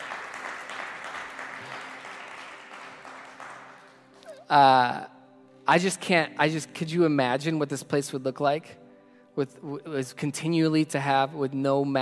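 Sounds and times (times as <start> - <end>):
audience clapping: 0.0 - 4.4
speech: 4.5 - 5.1, 5.7 - 8.8, 9.4 - 12.0.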